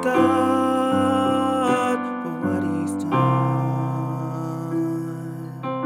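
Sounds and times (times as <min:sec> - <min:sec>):
full choir tenor and baritone voices: 0:00.0 - 0:05.7.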